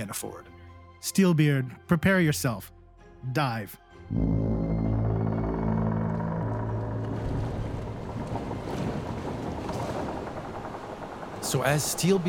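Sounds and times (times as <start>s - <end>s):
speech: 0.0s - 4.4s, 11.4s - 12.2s
ship wood creaking: 4.1s - 12.2s
water rushing into the hole: 6.0s - 12.2s.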